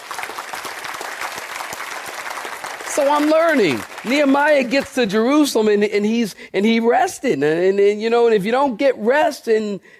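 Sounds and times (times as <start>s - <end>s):
audience clapping: 0.0s - 5.6s
speech: 2.9s - 9.9s.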